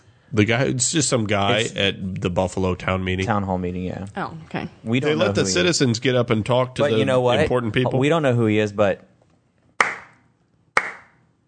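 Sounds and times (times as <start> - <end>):
speech: 0.3 - 9.1
slow golf clap: 9.8 - 10.2, 10.8 - 11.2.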